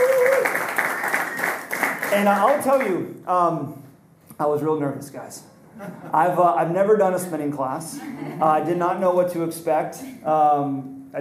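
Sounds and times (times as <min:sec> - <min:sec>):
person whooping: 0:00.0 - 0:00.7
crowd applauding: 0:00.0 - 0:02.9
speech: 0:02.1 - 0:03.8, 0:04.4 - 0:11.1.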